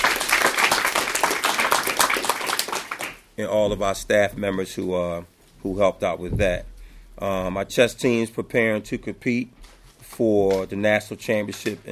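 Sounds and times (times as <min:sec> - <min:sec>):
audience applause: 0:00.0 - 0:03.2
speech: 0:03.4 - 0:11.8.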